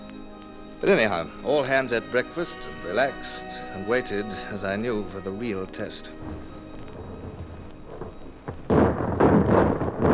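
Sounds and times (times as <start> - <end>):
speech: 0.8 - 6.6
ship's starboard guns firing in a ragged salvo: 6.2 - 10.1.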